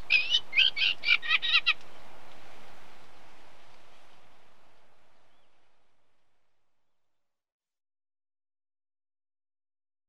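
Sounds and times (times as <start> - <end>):
unmated male Eurasian reed warbler singing: 0.0 - 2.1.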